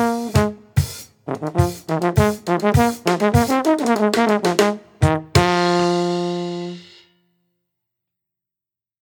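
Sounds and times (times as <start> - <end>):
funk music: 0.0 - 7.1.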